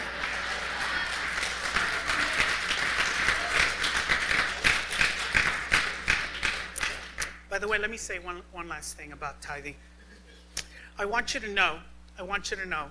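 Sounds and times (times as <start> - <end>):
few people clapping: 0.0 - 7.4
speech: 7.6 - 9.9, 11.0 - 12.9.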